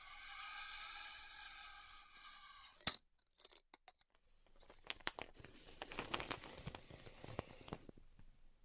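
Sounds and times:
styrofoam cut with a heat cutter crackling and squeaking: 0.0s - 2.8s, 4.9s - 7.9s
heat cutter buzzing: 0.0s - 2.9s.

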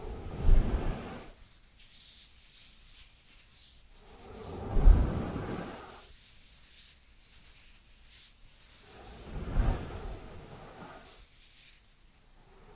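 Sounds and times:
dry hand sounds: 0.0s - 12.7s.

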